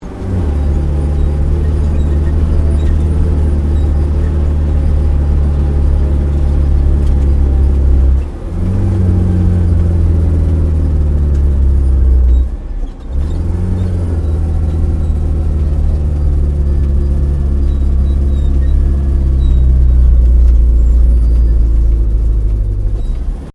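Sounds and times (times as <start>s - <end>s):
British APC FV603 Saracen light armoured vehicle manoeuvring, interior: 0.0s - 23.5s.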